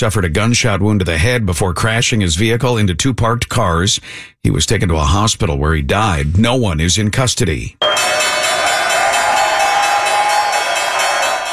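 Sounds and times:
speech: 0:00.0 - 0:08.3
stock exchange opening bell ringing: 0:07.8 - 0:11.5.

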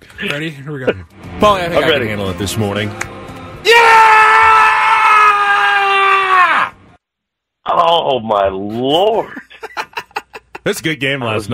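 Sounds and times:
speech: 0:00.2 - 0:03.8, 0:07.9 - 0:09.4, 0:10.6 - 0:11.5
guttural scream: 0:03.6 - 0:06.8
laughter: 0:09.1 - 0:10.7.

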